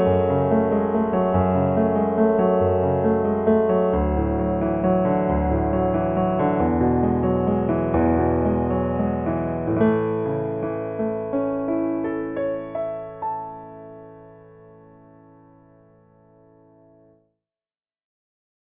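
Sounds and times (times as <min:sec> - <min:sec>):
new age piano: 0:00.0 - 0:17.2.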